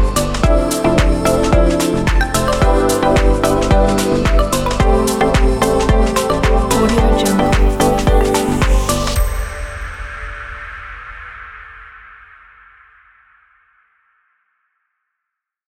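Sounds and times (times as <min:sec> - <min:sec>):
tropical deep house beat: 0:00.0 - 0:09.2.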